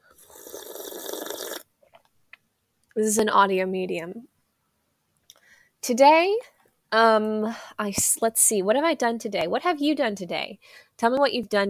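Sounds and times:
person sipping coffee: 0:00.1 - 0:01.7
speech: 0:03.0 - 0:04.3, 0:05.8 - 0:11.6.

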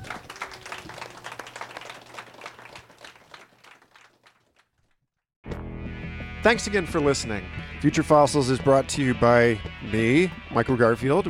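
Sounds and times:
audience round of applause: 0:00.0 - 0:04.7
speech: 0:06.4 - 0:11.2.

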